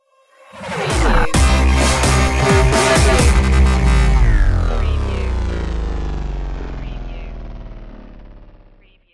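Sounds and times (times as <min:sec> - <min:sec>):
destroyed stinger: 0:01.0 - 0:09.0.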